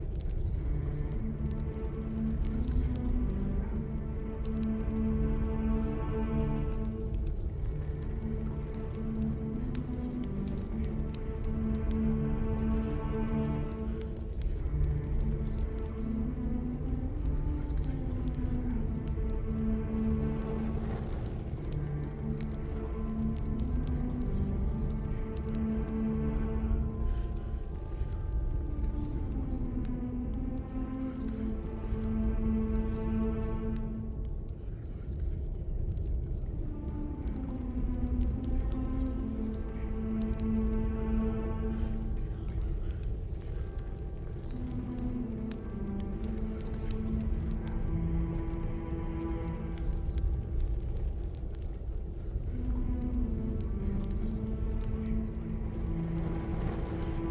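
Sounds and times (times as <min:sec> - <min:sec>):
ambient sounds: 0:00.0 - 0:57.2.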